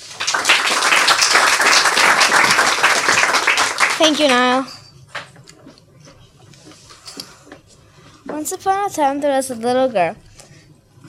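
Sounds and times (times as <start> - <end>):
audience applause welcoming an author to a reading: 0.0 - 4.4
speech: 4.0 - 4.8, 8.4 - 10.3.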